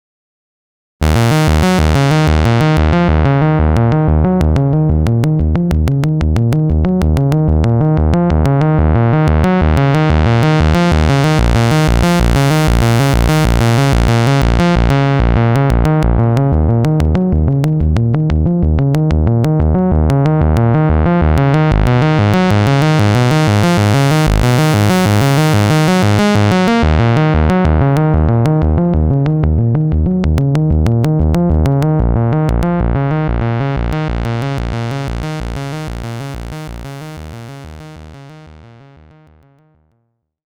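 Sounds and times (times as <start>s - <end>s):
hard filter synth solo: 1.0s - 39.2s.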